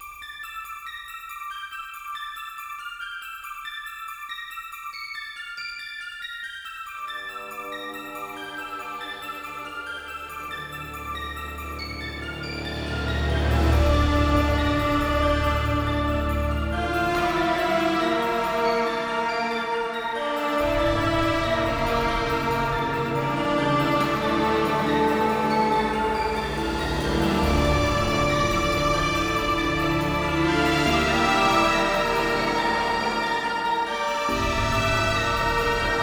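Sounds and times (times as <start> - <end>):
instrumental menu theme music: 7.3 - 36.0.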